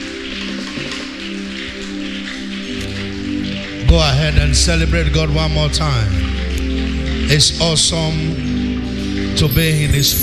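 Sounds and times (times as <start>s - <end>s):
audience clapping hands: 0.0s - 10.2s
sustained low musical tones: 0.0s - 10.2s
speech: 3.9s - 6.3s, 7.3s - 8.6s, 9.4s - 10.2s.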